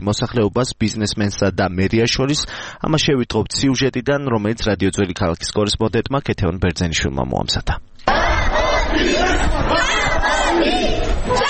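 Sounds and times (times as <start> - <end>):
speech: 0.0 - 8.2, 9.0 - 11.4
protesting Bukhaidze Street residents shouting outside Kutaisi city hall: 8.0 - 11.4.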